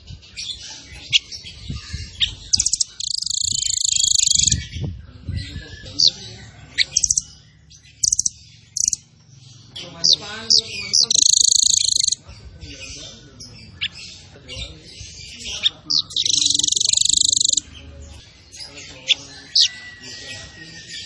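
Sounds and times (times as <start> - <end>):
zebra finch song with buzzy bursts and trills: 0.0 - 21.0.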